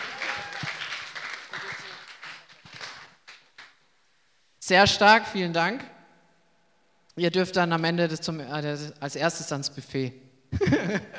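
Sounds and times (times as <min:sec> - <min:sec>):
audience applause: 0:00.0 - 0:03.8
speech: 0:04.7 - 0:05.9, 0:07.2 - 0:11.1
laughter: 0:10.5 - 0:11.1.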